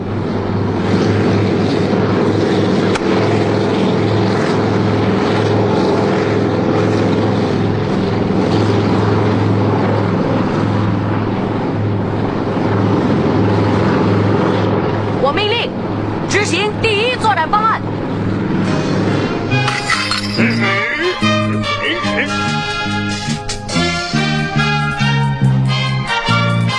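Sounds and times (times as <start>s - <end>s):
helicopter engine and rotors flying overhead: 0.0s - 26.7s.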